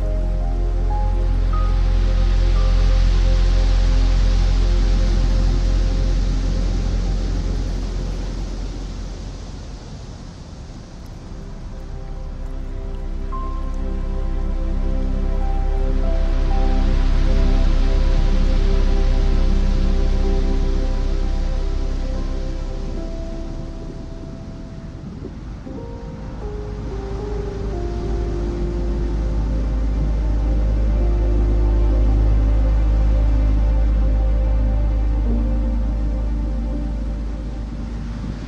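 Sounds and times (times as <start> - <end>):
calm piano music: 0.0 - 38.4
ocean waves: 0.0 - 38.4.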